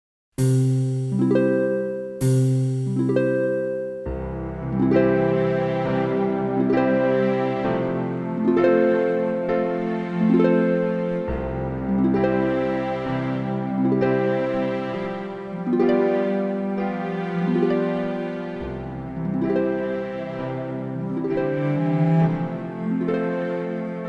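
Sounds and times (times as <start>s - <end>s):
slow pedalled piano chords: 0.4s - 24.0s.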